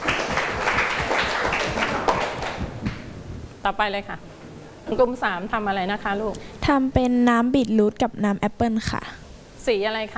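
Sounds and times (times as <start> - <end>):
classroom applause: 0.0 - 2.7
speech: 3.6 - 4.3, 4.9 - 10.1.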